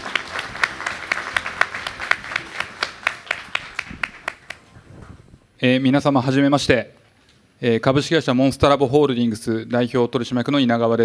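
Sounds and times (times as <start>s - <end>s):
audience applause: 0.0s - 4.7s
speech: 5.6s - 7.0s, 7.6s - 11.0s.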